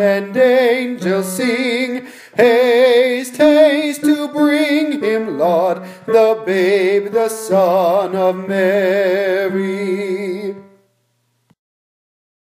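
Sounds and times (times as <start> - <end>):
tenor singing a carol: 0.0 - 10.8.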